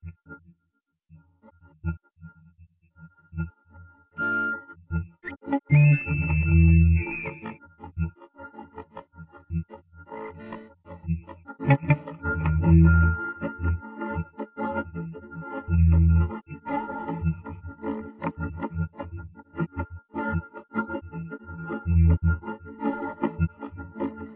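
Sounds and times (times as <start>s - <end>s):
synthesizer: 3.2s - 24.3s.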